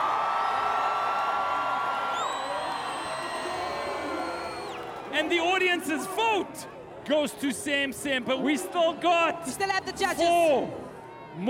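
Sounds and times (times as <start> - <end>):
crowd applauding and cheering: 0.0 - 6.0
shrill whistles: 2.0 - 5.0
speech: 5.2 - 10.8.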